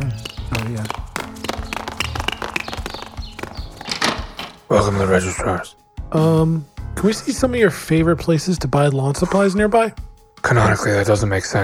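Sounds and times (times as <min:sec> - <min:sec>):
footsteps of people racing on foot: 0:00.0 - 0:05.0
speech: 0:04.7 - 0:11.6.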